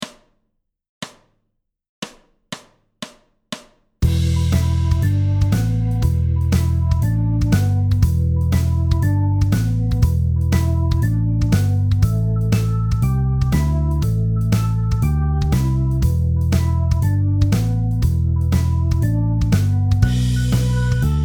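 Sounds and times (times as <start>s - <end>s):
backing track: 4.0s - 21.2s.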